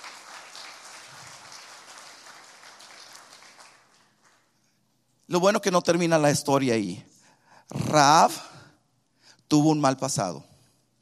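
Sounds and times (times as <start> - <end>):
audience applauding: 0.0 - 4.6
speech: 5.3 - 7.1, 7.9 - 8.5, 9.5 - 10.5.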